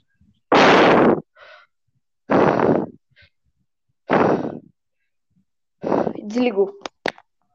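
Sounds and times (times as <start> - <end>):
imitated creepy heavy breathing on phone: 0.6 - 3.4, 4.0 - 6.6
speech: 6.3 - 6.8.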